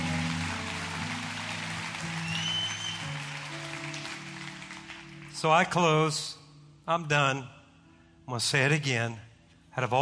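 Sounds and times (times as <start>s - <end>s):
audience cheering: 0.0s - 5.2s
audience clapping: 0.0s - 5.9s
speech: 5.4s - 7.6s, 8.3s - 10.0s.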